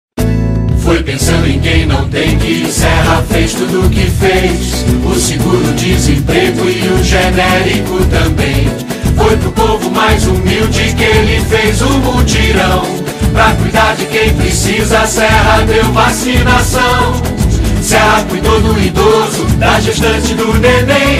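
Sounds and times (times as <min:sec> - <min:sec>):
samba music: 0:00.7 - 0:21.1.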